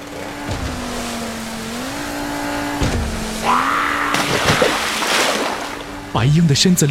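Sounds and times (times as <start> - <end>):
speedboat engine started with a pull cord and revving: 0.0 - 6.8
speech: 6.2 - 6.8.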